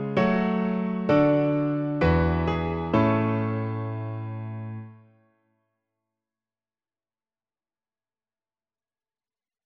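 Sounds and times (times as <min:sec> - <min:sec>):
piano: 0:00.0 - 0:05.4.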